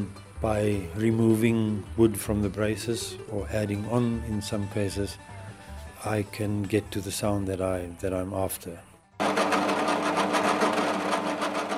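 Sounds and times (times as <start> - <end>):
speech: 0.0 - 5.4, 6.0 - 8.9
power drill running in a guitar workshop: 9.2 - 11.7.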